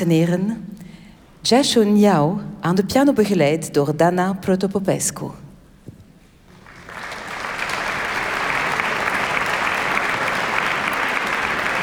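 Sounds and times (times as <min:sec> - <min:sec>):
speech: 0:00.0 - 0:00.7, 0:01.4 - 0:05.4
Studio 4 audience applause: 0:06.5 - 0:11.8.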